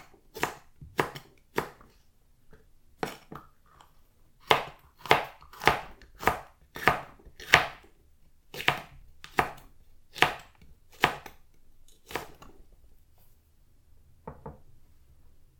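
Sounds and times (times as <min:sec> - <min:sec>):
green pepper being cut: 0:00.0 - 0:01.9, 0:04.4 - 0:07.9, 0:08.5 - 0:12.5.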